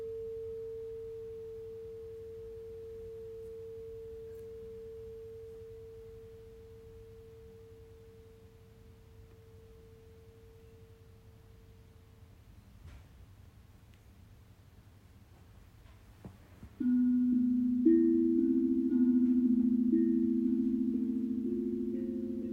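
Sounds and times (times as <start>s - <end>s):
Tibetan and crystal singing bowls ringing: 0.0s - 11.9s, 16.8s - 22.5s.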